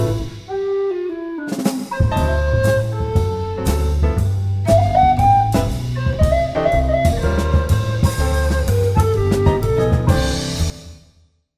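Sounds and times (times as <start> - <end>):
tenor recorders: 0.3 - 3.8, 4.7 - 10.4.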